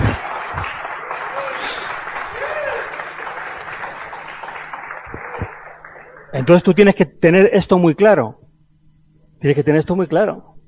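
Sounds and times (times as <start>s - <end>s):
audience applause: 0.0s - 6.5s
speech: 6.3s - 8.4s, 9.4s - 10.5s.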